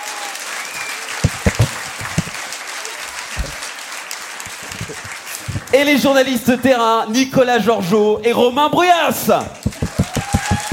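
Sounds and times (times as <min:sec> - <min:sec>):
audience applauding: 0:00.0 - 0:06.3, 0:09.4 - 0:10.7
speech: 0:05.7 - 0:09.6.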